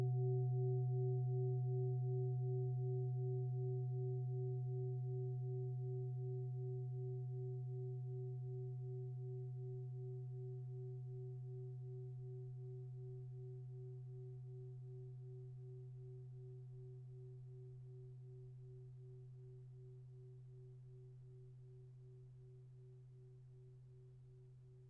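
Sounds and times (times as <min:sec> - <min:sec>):
shiny Tibetan bowl: 0:00.0 - 0:19.2.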